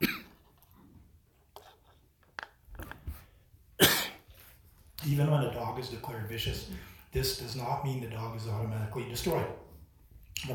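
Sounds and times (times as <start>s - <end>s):
dry coughs and throat-clearing: 0.0s - 0.4s, 3.8s - 4.3s
speech: 5.1s - 9.6s.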